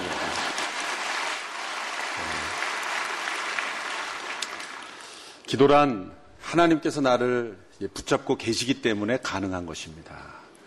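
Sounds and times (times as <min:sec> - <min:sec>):
audience applause: 0:00.0 - 0:05.4
speech: 0:05.5 - 0:10.4.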